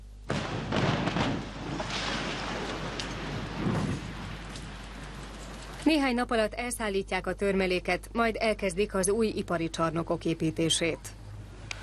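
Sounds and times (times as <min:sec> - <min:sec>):
demolition blast of a building: 0:00.3 - 0:05.8
speech: 0:05.9 - 0:11.2.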